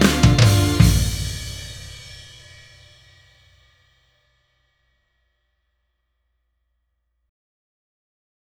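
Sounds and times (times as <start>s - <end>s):
rock quartet playing: 0.0s - 2.0s.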